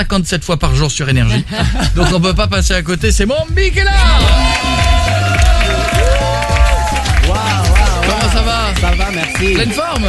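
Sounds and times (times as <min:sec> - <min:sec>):
speech: 0:00.0 - 0:05.1, 0:08.8 - 0:10.0
loud music with melodic line and bass: 0:00.8 - 0:10.0
laughter: 0:01.2 - 0:02.4
audience applause: 0:04.2 - 0:10.0.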